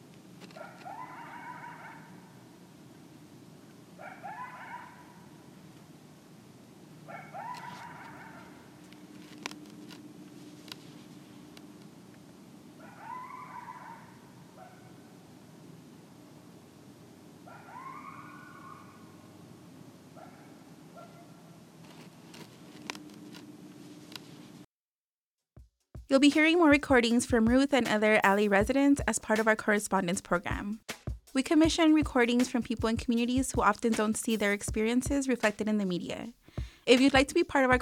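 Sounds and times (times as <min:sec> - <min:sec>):
coyotes yipping and howling at night: 0:00.5 - 0:02.6, 0:04.0 - 0:05.5, 0:07.0 - 0:08.8, 0:12.8 - 0:15.3, 0:17.4 - 0:21.6
speech: 0:26.1 - 0:37.8.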